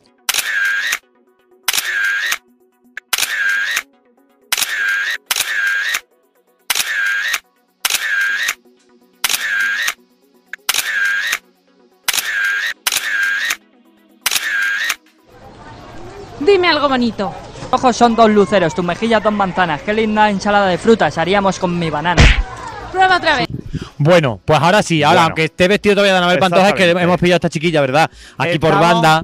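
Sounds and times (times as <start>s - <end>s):
camera taking photos: 0.3s - 1.0s, 1.7s - 2.4s, 3.0s - 3.8s, 4.5s - 6.0s, 6.7s - 8.6s, 9.2s - 10.0s, 10.6s - 11.4s, 12.1s - 13.6s, 14.2s - 15.0s
speech: 16.5s - 29.2s.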